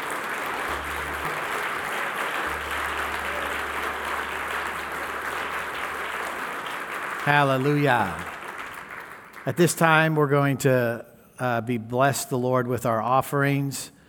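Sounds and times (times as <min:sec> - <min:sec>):
audience clapping hands: 0:00.0 - 0:10.3
speech: 0:07.3 - 0:08.4, 0:09.5 - 0:14.0.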